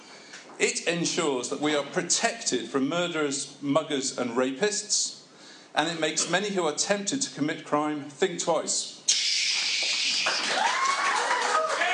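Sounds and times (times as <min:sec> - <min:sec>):
speech: 0:00.6 - 0:05.2, 0:05.8 - 0:09.2
cheers and whistles: 0:09.1 - 0:11.9
large crowd clapping: 0:09.3 - 0:11.9.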